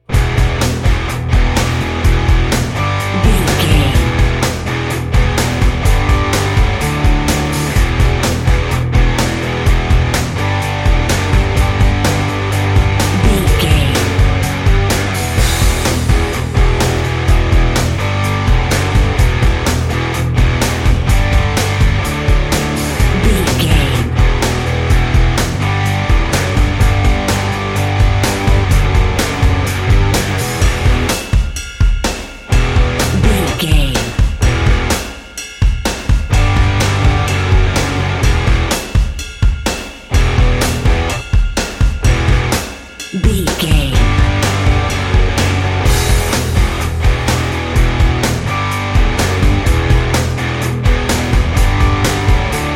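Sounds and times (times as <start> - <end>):
sports rock music: 0.0 - 52.7.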